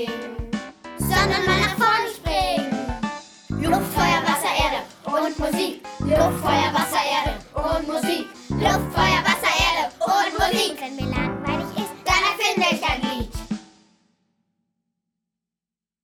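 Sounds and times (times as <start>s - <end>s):
person rapping: 0.2s - 2.7s, 3.6s - 13.4s.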